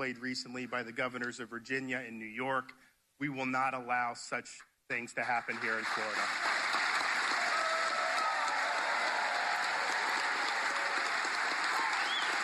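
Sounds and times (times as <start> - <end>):
speech: 0.0 - 6.5
audience applause: 5.3 - 12.4.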